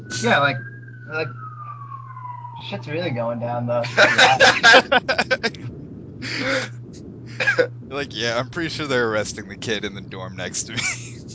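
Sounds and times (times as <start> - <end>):
police siren outside: 0.0 - 5.4
speech: 0.1 - 1.4, 2.6 - 11.2
laughter: 3.8 - 6.7, 7.4 - 8.5, 10.6 - 11.3.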